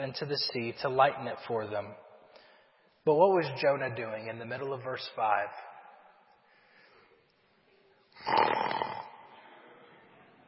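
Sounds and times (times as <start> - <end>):
speech: 0.0 - 2.1, 3.0 - 5.7
snoring: 8.2 - 9.1.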